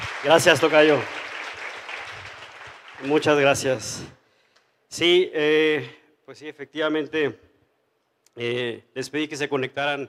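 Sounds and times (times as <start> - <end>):
audience applause welcoming a speaker: 0.0 - 3.8
speech: 0.2 - 1.2, 3.0 - 4.2, 4.9 - 7.5, 8.4 - 10.0.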